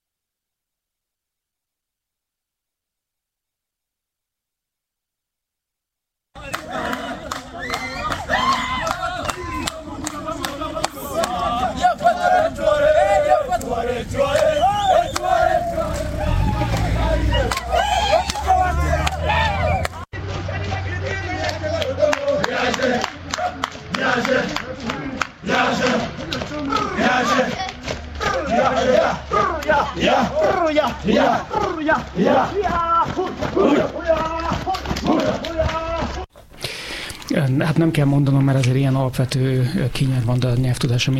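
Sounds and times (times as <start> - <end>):
police officers singing while running: 6.4 - 36.3
speech: 37.4 - 41.1.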